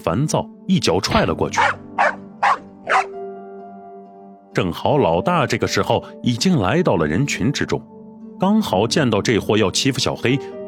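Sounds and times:
speech: 0:00.0 - 0:01.8, 0:04.6 - 0:10.6
dog barking furiously: 0:01.6 - 0:03.2.

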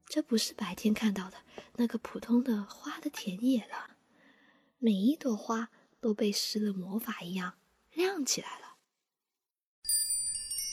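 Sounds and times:
speech: 0:00.1 - 0:04.0, 0:04.8 - 0:08.7
wind chimes tinkling: 0:09.8 - 0:10.7.

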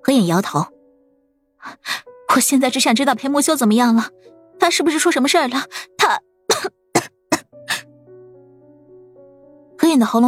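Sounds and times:
speech: 0:00.1 - 0:00.8, 0:01.6 - 0:06.8, 0:09.9 - 0:10.2
person coughing violently: 0:06.5 - 0:07.8.

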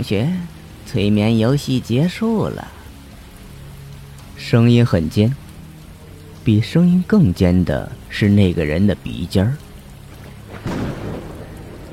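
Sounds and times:
speech: 0:00.0 - 0:02.8, 0:04.4 - 0:05.4, 0:06.4 - 0:09.6
steady hiss of rain: 0:00.0 - 0:11.9
sharp loud thunderclap: 0:10.1 - 0:11.9.

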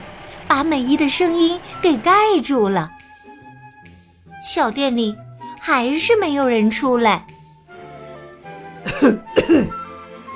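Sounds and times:
speech: 0:00.5 - 0:03.0, 0:04.4 - 0:07.3, 0:09.0 - 0:09.8
man coughing: 0:08.8 - 0:09.8.

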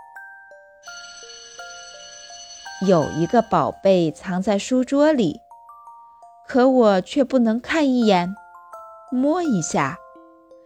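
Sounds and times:
school class bell ringing: 0:00.8 - 0:03.8
speech: 0:02.8 - 0:05.4, 0:06.5 - 0:08.4, 0:09.1 - 0:10.0.

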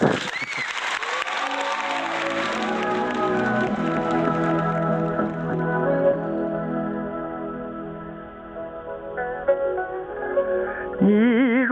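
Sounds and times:
audience applause: 0:00.0 - 0:06.7
melodic musical introduction: 0:01.5 - 0:11.6.

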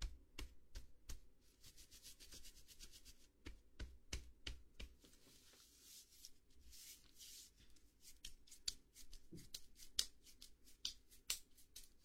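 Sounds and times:
taps and pats of a head and shoulder massage: 0:00.0 - 0:05.6, 0:07.7 - 0:12.0
soft rubbing and brushing: 0:00.8 - 0:12.0.

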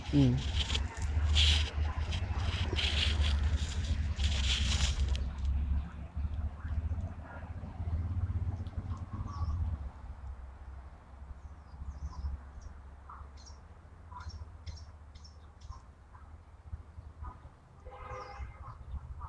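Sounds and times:
laughingthrushes scratching the ground for food: 0:00.0 - 0:06.0
steady low rumble: 0:00.0 - 0:10.2
speech: 0:00.1 - 0:00.5.

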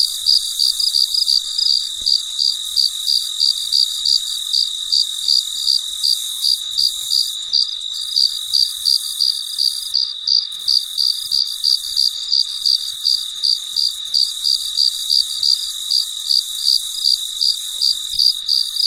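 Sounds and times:
continuous insect hum: 0:00.0 - 0:18.8
cricket chirping: 0:00.0 - 0:18.8.

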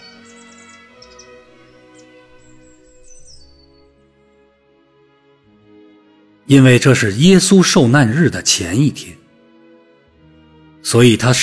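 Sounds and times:
startled bird chirping: 0:00.0 - 0:03.9
speech: 0:06.5 - 0:09.2, 0:10.9 - 0:11.4.

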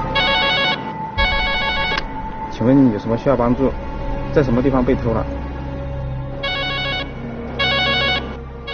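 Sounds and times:
emergency telephone ringing: 0:00.2 - 0:02.0, 0:06.5 - 0:08.7
speech: 0:02.6 - 0:05.5.

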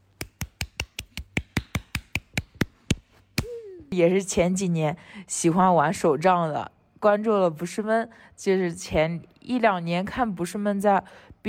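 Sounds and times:
hand clapping: 0:00.0 - 0:03.6
speech: 0:04.0 - 0:11.4.

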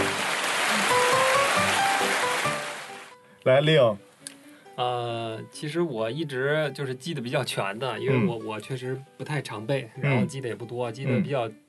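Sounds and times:
applause: 0:00.0 - 0:03.1
speech: 0:03.4 - 0:04.1, 0:04.8 - 0:11.6.

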